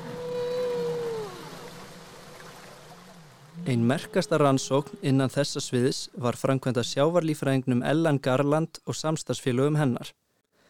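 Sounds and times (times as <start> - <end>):
humpback whale song: 0.0 - 5.4
speech: 3.7 - 10.2.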